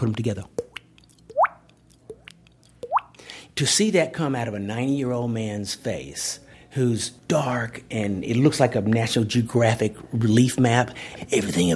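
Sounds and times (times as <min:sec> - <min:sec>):
speech: 0:00.0 - 0:00.6, 0:03.6 - 0:11.7
mouth imitation of a water drip by tapping the cheek: 0:00.5 - 0:03.4.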